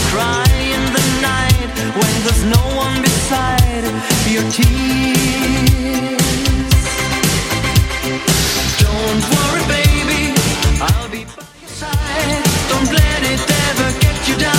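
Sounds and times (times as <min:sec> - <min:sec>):
80s drum machine beat: 0:00.0 - 0:14.5.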